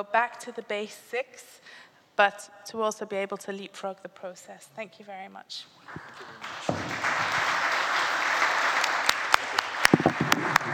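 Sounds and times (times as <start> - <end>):
speech: 0.0 - 7.4
crowd applause: 5.9 - 10.7.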